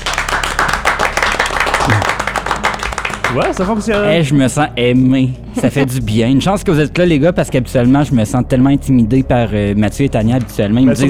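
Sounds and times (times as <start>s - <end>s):
small studio audience applauding: 0.0s - 3.9s
speech: 3.3s - 11.0s.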